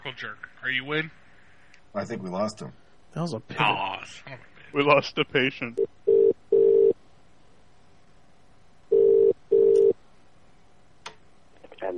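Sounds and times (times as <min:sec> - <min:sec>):
speech: 0:00.1 - 0:01.2, 0:01.9 - 0:06.0
electronic telephone line beeps after a call is hung up: 0:08.9 - 0:09.9.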